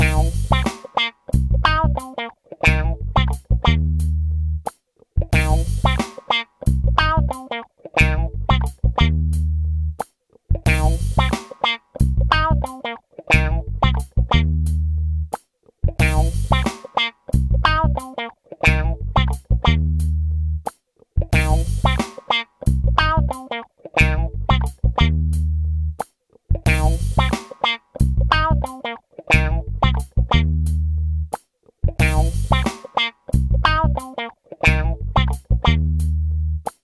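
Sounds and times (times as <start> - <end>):
funk improvisation: 0.0 - 36.8.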